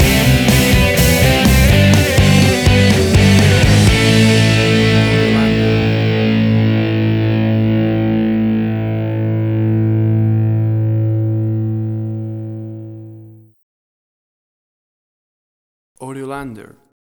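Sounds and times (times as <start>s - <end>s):
big rock stinger: 0.0s - 13.4s.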